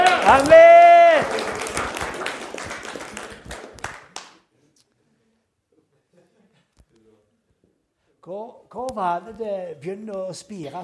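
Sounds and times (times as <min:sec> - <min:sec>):
audience applause: 0:00.0 - 0:04.3
speech: 0:00.3 - 0:00.6, 0:09.0 - 0:10.8.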